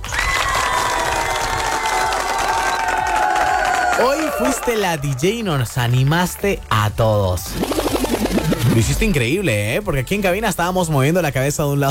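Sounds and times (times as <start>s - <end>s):
applause and cheering: 0.0s - 8.9s
speech: 4.0s - 11.9s.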